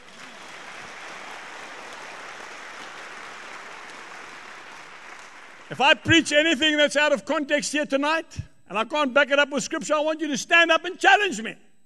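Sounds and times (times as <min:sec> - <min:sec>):
audience clapping: 0:00.0 - 0:06.2
speech: 0:05.7 - 0:11.6.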